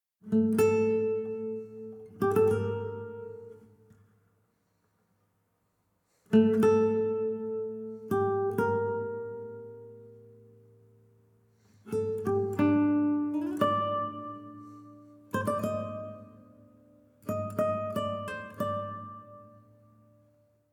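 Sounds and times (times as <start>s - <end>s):
savannah-themed music: 0.2s - 4.1s, 6.2s - 20.7s.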